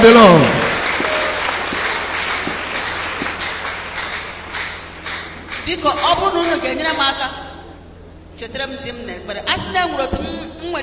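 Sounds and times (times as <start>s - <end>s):
speech: 0.0s - 0.6s, 5.7s - 7.4s, 8.4s - 10.8s
church audience clapping hands: 0.0s - 5.8s.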